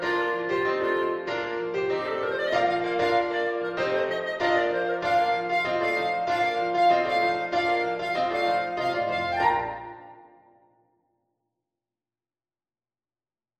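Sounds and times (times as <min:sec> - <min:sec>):
clarinet playing jive: 0:00.0 - 0:10.4.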